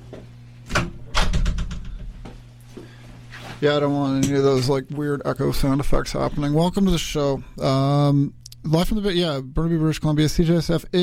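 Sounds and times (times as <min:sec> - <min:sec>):
speech: 0:00.1 - 0:00.4, 0:03.6 - 0:11.0
studio door closing: 0:00.7 - 0:02.1.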